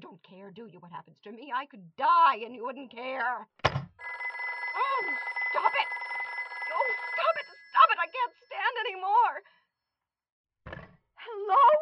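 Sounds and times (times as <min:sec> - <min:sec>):
speech: 0:00.2 - 0:03.9
telephone bell ringing: 0:04.0 - 0:09.3.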